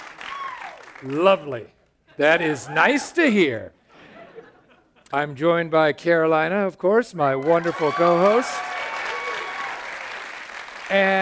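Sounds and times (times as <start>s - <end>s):
crowd applauding: 0.0s - 1.6s, 7.4s - 11.2s
speech: 1.0s - 3.8s, 5.1s - 8.7s, 10.9s - 11.2s.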